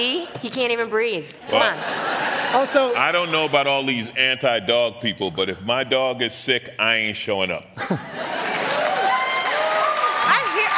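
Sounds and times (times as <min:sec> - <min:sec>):
speech: 0:00.0 - 0:08.5
laughter: 0:01.4 - 0:03.9, 0:07.8 - 0:09.5
audience applause: 0:08.2 - 0:10.7
audience voices and whoops: 0:08.6 - 0:10.7.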